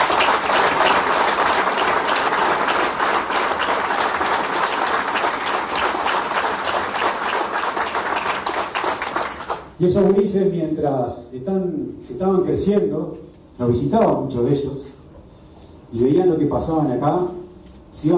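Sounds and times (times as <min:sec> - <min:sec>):
audience applause: 0:00.0 - 0:09.8
speech: 0:09.8 - 0:14.7, 0:15.9 - 0:17.4, 0:18.0 - 0:18.1.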